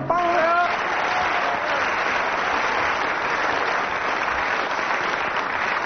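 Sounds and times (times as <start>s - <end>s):
audience applause: 0.2s - 5.8s.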